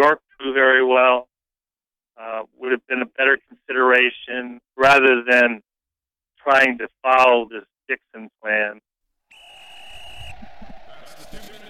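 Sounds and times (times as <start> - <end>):
speech: 0.0 - 1.3, 2.2 - 5.7, 6.4 - 8.9
two-minute drill warning high-pitched electronic tone: 9.3 - 11.6
low rumble: 9.4 - 11.6.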